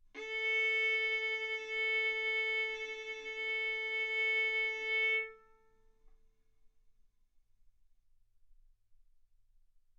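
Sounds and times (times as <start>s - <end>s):
violin bowed arco notes: 0.2s - 5.7s.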